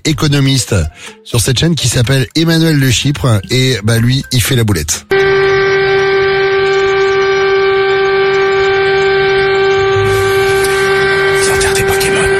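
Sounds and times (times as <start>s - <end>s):
speech: 0.0s - 5.1s
crackling static: 5.1s - 12.3s
sirens sounding at a funeral: 5.1s - 12.3s.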